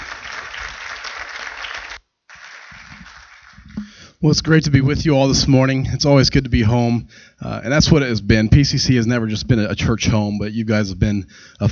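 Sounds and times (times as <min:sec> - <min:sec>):
crowd clapping: 0:00.0 - 0:03.8
speech: 0:04.2 - 0:11.6.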